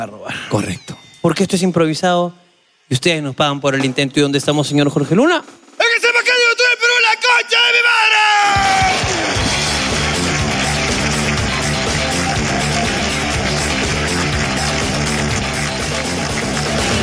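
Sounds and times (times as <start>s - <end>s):
speech: 0.0s - 5.6s
crowd whoops and yells: 6.3s - 9.4s
crowd applause: 8.5s - 17.0s.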